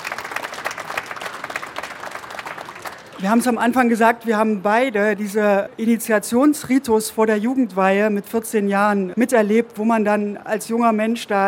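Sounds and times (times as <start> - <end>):
audience applause: 0.0 - 3.5
speech: 3.2 - 11.4.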